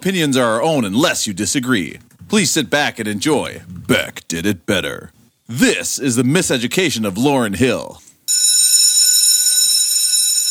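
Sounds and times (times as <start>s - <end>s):
speech: 0.0s - 8.5s
loud school bell ringing: 8.3s - 10.4s.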